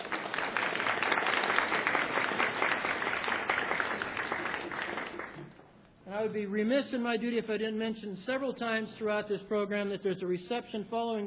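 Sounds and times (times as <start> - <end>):
audience applause: 0.0 - 5.5
speech: 6.2 - 11.2.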